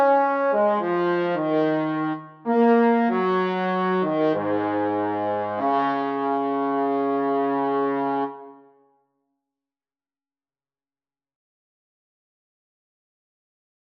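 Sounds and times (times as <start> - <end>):
slow trombone: 0.0 - 8.7.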